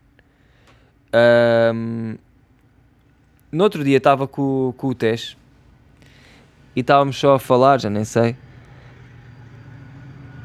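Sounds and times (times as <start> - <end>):
speech: 1.1 - 2.3, 3.5 - 5.4, 6.8 - 8.4
train passing: 5.8 - 10.4.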